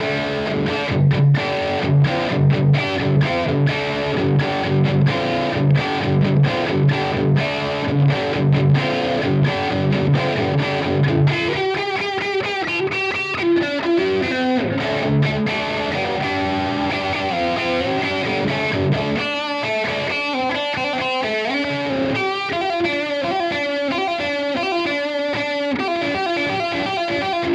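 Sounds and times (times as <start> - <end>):
Strymon Iridium Punch amp pedal tone: 0.0 - 27.5.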